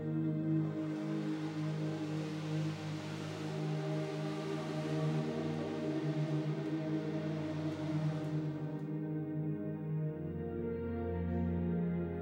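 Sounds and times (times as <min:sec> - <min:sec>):
choir inhaling: 0:00.0 - 0:09.2
piano: 0:00.0 - 0:12.2.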